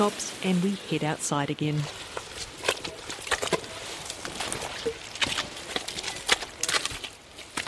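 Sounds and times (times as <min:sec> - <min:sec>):
speech: 0:00.0 - 0:02.2
boots squelching on Anchor Island: 0:01.8 - 0:07.6.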